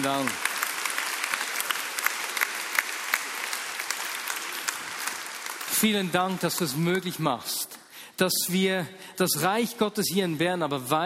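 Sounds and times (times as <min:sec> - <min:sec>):
speech: 0:00.0 - 0:00.5, 0:05.8 - 0:11.0
many hands clapping: 0:00.0 - 0:07.1.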